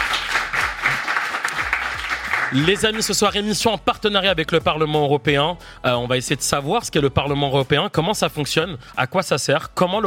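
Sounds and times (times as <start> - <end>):
audience applause for a guest introduced on a live panel show: 0.0 - 2.9
speech: 2.5 - 10.0.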